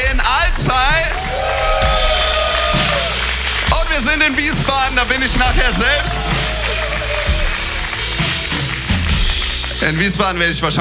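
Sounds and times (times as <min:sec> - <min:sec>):
crowd applauding: 0:00.0 - 0:10.8
whoops and yells from a crowd: 0:01.1 - 0:03.3, 0:05.9 - 0:07.8
speech: 0:05.0 - 0:06.3, 0:09.8 - 0:10.8.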